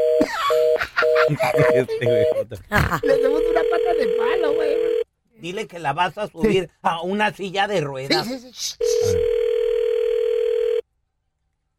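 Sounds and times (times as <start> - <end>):
laughter: 0.2 - 3.5
speech: 1.3 - 4.7, 5.4 - 9.3
telephone dial tone after call cut off: 3.2 - 5.0, 8.9 - 10.8.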